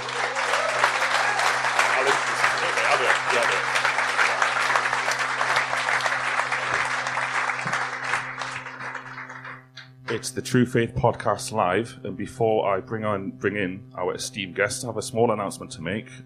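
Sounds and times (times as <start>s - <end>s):
audience applause: 0.0s - 9.7s
speech: 10.2s - 16.2s.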